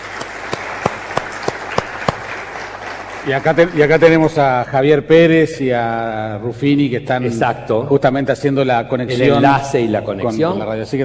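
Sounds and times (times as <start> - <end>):
audience applause: 0.0 - 4.3
speech: 3.2 - 11.0.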